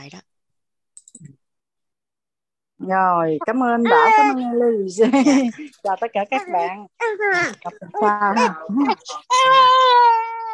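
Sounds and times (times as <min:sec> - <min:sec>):
speech: 0:00.0 - 0:00.3, 0:02.8 - 0:10.2
person crying: 0:03.8 - 0:10.5.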